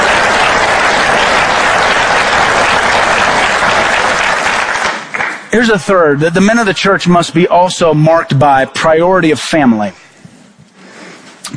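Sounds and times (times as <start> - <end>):
audience applause: 0.0 - 5.6
speech: 5.5 - 10.0.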